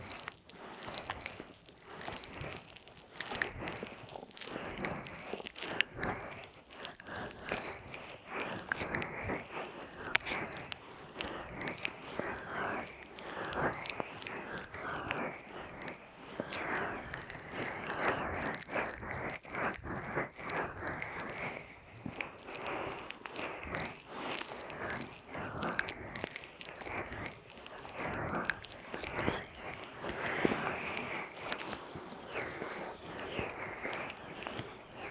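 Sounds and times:
wet sticky crackles from ear massage with oil, lotion and a peeling pack: 0:00.0 - 0:35.0.

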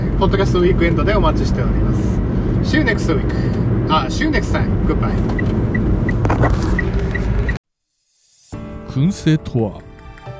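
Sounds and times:
engine drone inside a kei truck cabin: 0:00.0 - 0:07.6
speech: 0:00.2 - 0:05.8, 0:06.4 - 0:06.8, 0:09.0 - 0:09.9.

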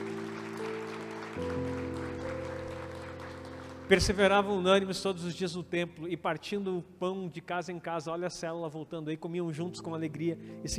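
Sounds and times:
audience applause: 0:00.0 - 0:04.5
speech: 0:03.9 - 0:10.7.

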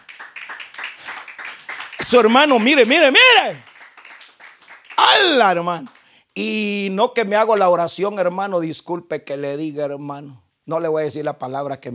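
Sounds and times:
crowd clapping hands: 0:00.0 - 0:06.1
speech: 0:02.0 - 0:03.7, 0:05.2 - 0:11.9.

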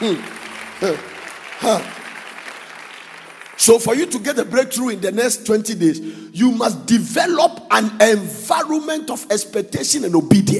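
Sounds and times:
speech: 0:00.0 - 0:02.0, 0:03.6 - 0:10.5
crowd clapping: 0:00.0 - 0:04.7.

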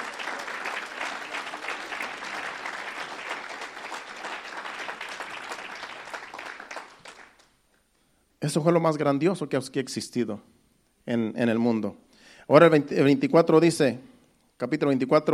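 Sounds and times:
audience applauding: 0:00.0 - 0:07.6
speech: 0:08.4 - 0:15.3.

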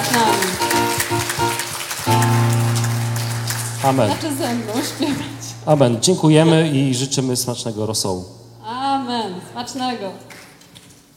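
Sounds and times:
audience applause: 0:00.0 - 0:06.0
speech: 0:03.9 - 0:08.4, 0:09.3 - 0:10.3.

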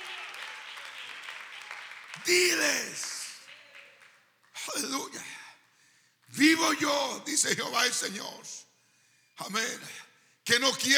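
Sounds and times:
audience applause: 0:00.0 - 0:04.3
speech: 0:02.2 - 0:03.1, 0:04.8 - 0:05.2, 0:06.4 - 0:08.7, 0:09.4 - 0:10.9.

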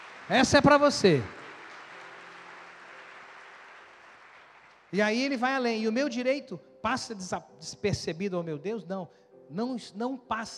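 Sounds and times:
audience applause: 0:00.0 - 0:05.0
speech: 0:00.3 - 0:01.4, 0:04.9 - 0:10.5.

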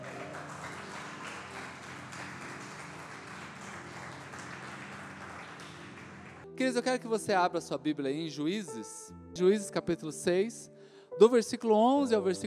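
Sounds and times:
audience applause: 0:00.0 - 0:06.4
speech: 0:06.6 - 0:12.4.

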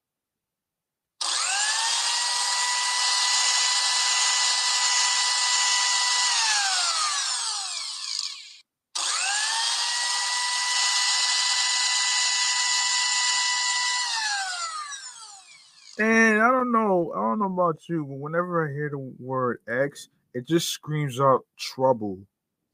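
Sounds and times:
blender running: 0:01.2 - 0:16.0
speech: 0:16.0 - 0:22.3.

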